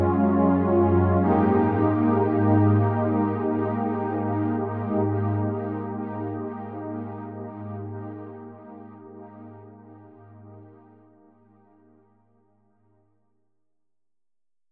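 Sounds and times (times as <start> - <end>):
1980s-style synth strings: 0.0 - 9.6.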